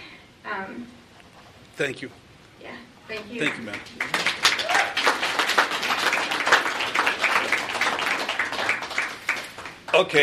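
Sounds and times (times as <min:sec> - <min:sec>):
speech: 0:00.5 - 0:01.0, 0:01.8 - 0:04.6, 0:10.0 - 0:10.2
audience applauding after public comment: 0:03.1 - 0:10.2.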